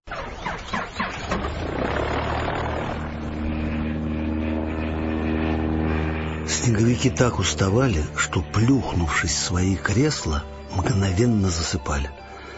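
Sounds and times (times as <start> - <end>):
vehicle engine cranking, starting and pulling away: 0.1 - 12.5
speech: 6.6 - 12.2.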